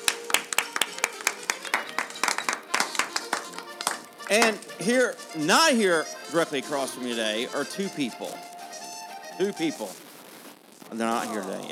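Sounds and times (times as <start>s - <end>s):
audience applause: 0.0s - 4.7s
speech: 4.3s - 8.5s, 9.4s - 10.1s, 10.9s - 11.7s.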